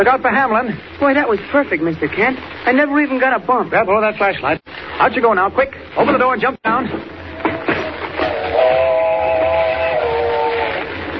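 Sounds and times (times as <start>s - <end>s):
speech: 0.0s - 7.2s
train whistle: 8.2s - 10.8s.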